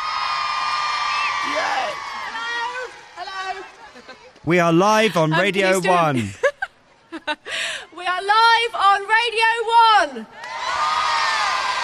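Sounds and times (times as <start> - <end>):
crowd cheering: 0.0 - 6.1, 10.3 - 11.8
speech: 3.2 - 6.4, 8.2 - 10.4
laughter: 5.5 - 7.6.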